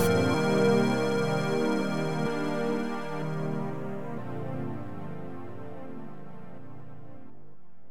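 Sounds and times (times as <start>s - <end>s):
elevator music: 0.0s - 4.7s.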